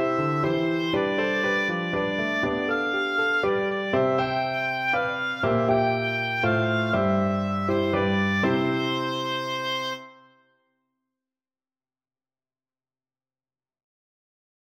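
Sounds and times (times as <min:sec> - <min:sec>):
oboe: 0:00.0 - 0:10.5.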